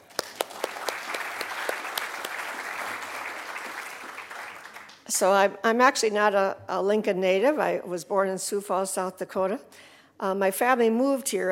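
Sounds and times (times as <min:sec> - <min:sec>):
audience applause: 0:00.0 - 0:05.0
speech: 0:05.1 - 0:11.5.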